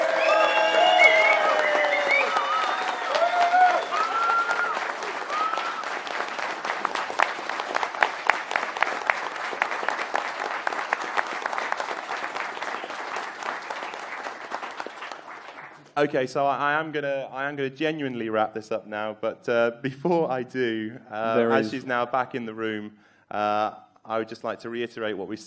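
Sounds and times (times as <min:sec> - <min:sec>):
scattered whoops and cheering voices: 0:00.0 - 0:06.0
audience clapping: 0:00.0 - 0:16.2
speech: 0:16.0 - 0:25.4.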